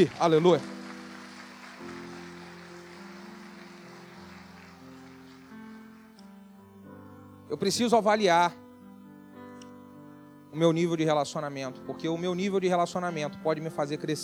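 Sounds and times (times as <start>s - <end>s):
speech: 0.0s - 0.7s, 7.5s - 8.6s, 10.5s - 14.2s
audience applause: 0.0s - 6.0s.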